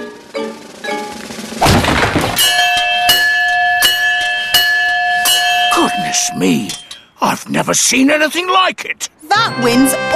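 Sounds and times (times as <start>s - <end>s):
heavy hammer strike on fairground strength tester: 1.6s - 2.6s
bright bell clanging: 2.3s - 7.1s
speech: 6.3s - 10.1s.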